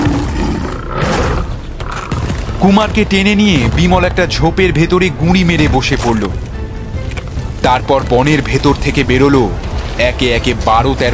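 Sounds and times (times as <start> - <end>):
lion roaring in a jungle-adventure audio drama: 0.0 - 2.4
speech: 2.6 - 6.5, 7.6 - 11.1.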